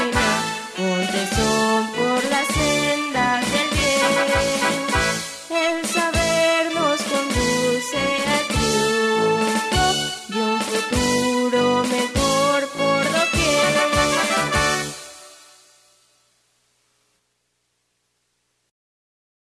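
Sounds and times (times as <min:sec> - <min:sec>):
school anthem singing: 0:00.0 - 0:15.2.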